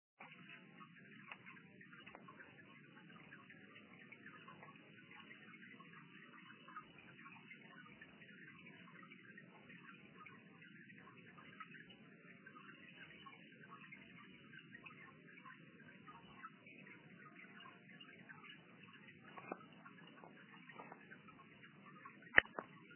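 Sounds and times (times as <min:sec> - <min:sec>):
water drops in a cave: 0:00.2 - 0:22.9.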